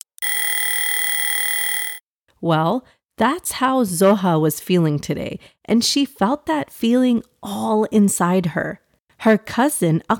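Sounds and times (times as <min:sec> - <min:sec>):
loud steady electronic buzzer: 0:00.2 - 0:02.0
speech: 0:02.4 - 0:10.1.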